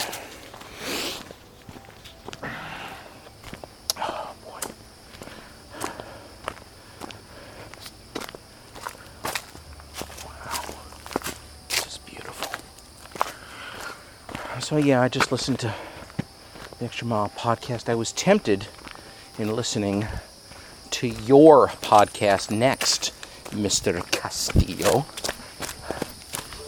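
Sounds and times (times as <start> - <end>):
footsteps of a person walking on uneven terrain: 0.0 - 16.9, 18.6 - 26.6
speech: 14.7 - 15.9, 16.8 - 18.8, 19.4 - 20.3, 21.0 - 25.2.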